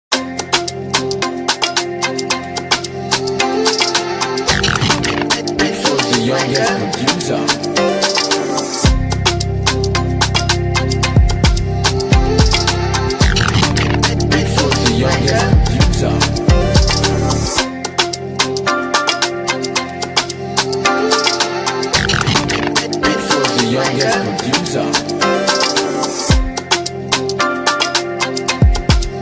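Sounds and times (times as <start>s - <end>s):
instrumental music: 0.1s - 29.2s.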